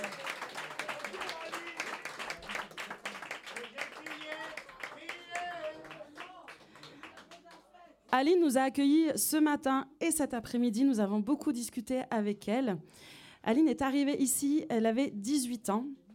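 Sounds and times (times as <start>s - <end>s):
audience applause: 0.0s - 7.7s
speech: 8.1s - 16.0s.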